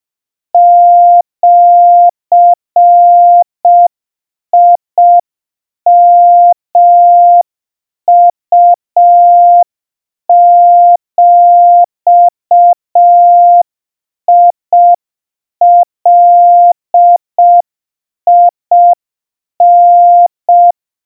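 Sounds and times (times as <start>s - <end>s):
700 Hz Morse code tones: 0.6s - 3.9s, 4.6s - 5.2s, 5.9s - 7.4s, 8.1s - 9.7s, 10.3s - 13.6s, 14.3s - 15.0s, 15.6s - 17.6s, 18.3s - 19.0s, 19.6s - 20.8s.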